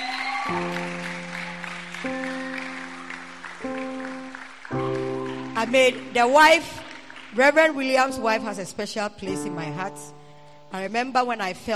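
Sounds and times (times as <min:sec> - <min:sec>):
audience clapping: 0:00.0 - 0:08.2
speech: 0:00.5 - 0:00.9, 0:05.6 - 0:11.7.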